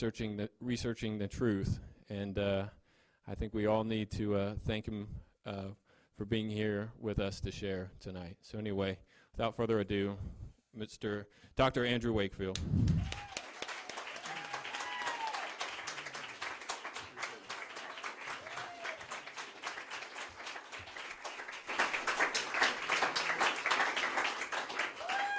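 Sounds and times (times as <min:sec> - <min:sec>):
speech: 0:00.0 - 0:13.2
audience applause: 0:12.9 - 0:25.3
faint voices and cheers: 0:13.0 - 0:15.7, 0:17.2 - 0:19.4, 0:25.0 - 0:25.3.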